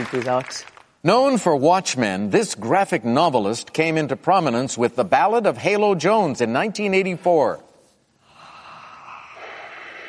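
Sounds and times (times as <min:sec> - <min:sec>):
speech: 0:00.0 - 0:07.6
heavy breathing: 0:08.2 - 0:10.0.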